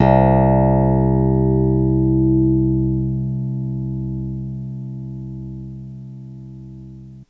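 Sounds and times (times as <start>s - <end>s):
clavinet note C1 medium: 0.0s - 7.2s
piano: 0.0s - 7.2s.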